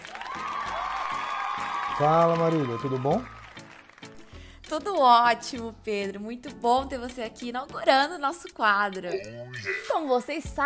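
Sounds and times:
applause: 0.0s - 4.4s
speech: 2.0s - 3.4s, 4.7s - 10.6s.

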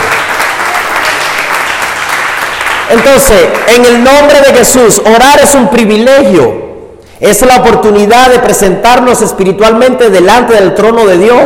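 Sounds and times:
audience applause: 0.0s - 3.8s
speech: 2.9s - 6.6s, 7.2s - 11.4s.

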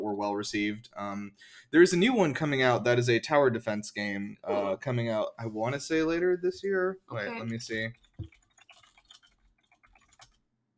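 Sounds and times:
speech: 0.2s - 8.4s
keyboard typing: 7.5s - 10.4s.

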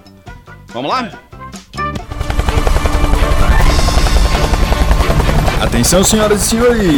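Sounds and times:
speech: 0.7s - 1.3s, 5.6s - 6.9s
helicopter taking off, engine and rotors roaring: 2.0s - 6.9s.

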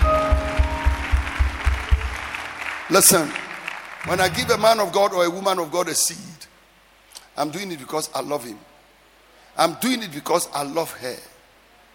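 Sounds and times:
audience clapping hands: 0.0s - 5.1s
speech: 2.9s - 3.4s, 4.0s - 6.5s, 7.4s - 8.7s, 9.6s - 11.3s.

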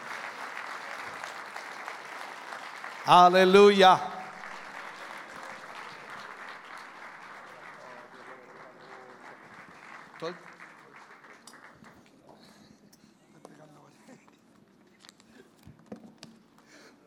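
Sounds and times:
loud applause: 0.0s - 12.1s
speech: 3.1s - 4.1s.

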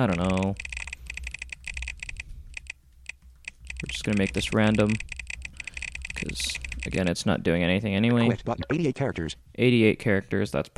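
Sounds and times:
speech: 0.0s - 0.7s, 3.8s - 5.1s, 6.2s - 10.7s
typing a sample password on a computer keyboard: 0.0s - 7.1s.

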